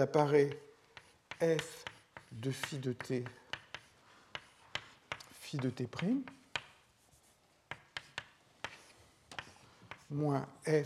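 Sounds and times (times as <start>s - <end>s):
speech: 0.0s - 0.7s, 1.4s - 3.4s, 5.5s - 6.4s, 10.1s - 10.8s
writing out the terms of an equation during a lecture: 0.3s - 10.2s.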